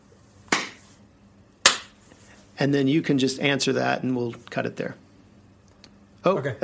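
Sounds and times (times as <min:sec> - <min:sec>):
hand clap for audio sync: 0:00.5 - 0:00.9, 0:01.6 - 0:02.0
speech: 0:02.6 - 0:05.0, 0:06.2 - 0:06.6.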